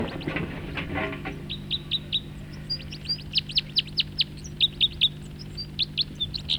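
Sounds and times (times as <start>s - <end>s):
rustling: 0.0s - 2.0s
bird singing during song flight: 0.0s - 6.5s.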